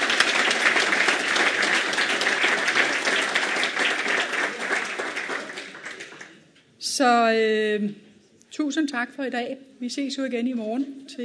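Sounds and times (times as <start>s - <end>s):
audience applause: 0.0s - 6.4s
speech: 7.0s - 11.2s.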